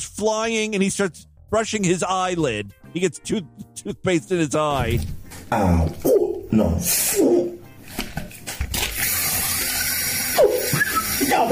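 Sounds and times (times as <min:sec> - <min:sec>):
speech: 0:00.0 - 0:07.5
water running from a tap: 0:08.7 - 0:11.5.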